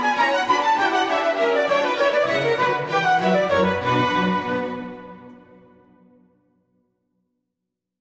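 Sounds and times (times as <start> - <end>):
orchestral suite in B minor: 0.0 - 6.2.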